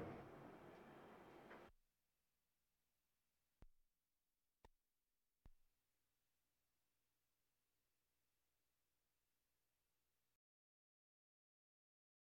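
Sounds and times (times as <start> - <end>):
military vehicles: 0.0 - 1.6.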